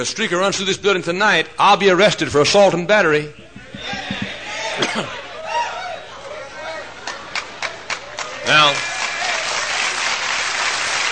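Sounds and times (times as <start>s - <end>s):
speech: 0.0s - 4.0s, 4.8s - 5.2s
crowd clapping: 7.0s - 11.1s.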